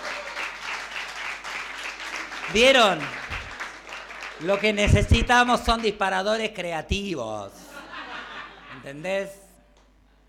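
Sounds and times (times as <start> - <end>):
audience applause: 0.0 - 6.0
speech: 2.5 - 3.2, 4.4 - 7.7, 8.8 - 9.4
laughter: 7.6 - 9.0.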